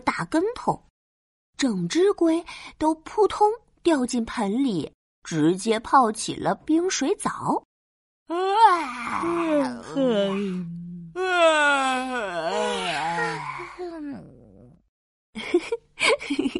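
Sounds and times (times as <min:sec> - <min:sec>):
speech: 0:00.2 - 0:00.9, 0:01.6 - 0:07.7, 0:08.3 - 0:14.2
person yawning: 0:08.3 - 0:14.6.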